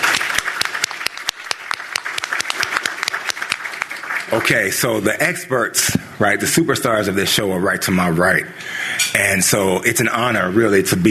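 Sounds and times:
crowd applause: 0.0s - 4.7s
speech: 4.3s - 11.1s.

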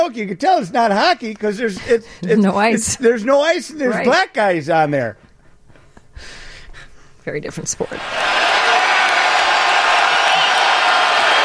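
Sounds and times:
speech: 0.0s - 5.2s, 6.2s - 6.4s, 7.2s - 8.5s
arena crowd cheering: 7.9s - 11.4s.

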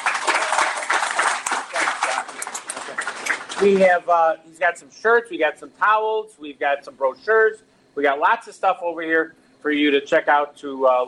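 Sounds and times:
audience applause: 0.0s - 3.8s
speech: 3.6s - 11.0s.

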